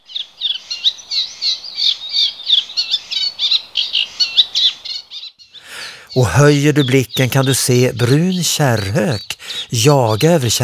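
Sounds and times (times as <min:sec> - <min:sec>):
wetland birdsong of wagtails, buntings and warblers: 0:00.0 - 0:10.6
speech: 0:06.2 - 0:10.6.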